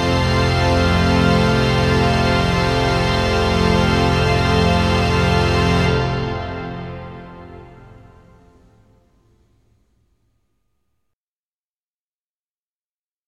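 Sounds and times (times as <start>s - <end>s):
organ sonata: 0.0s - 9.5s.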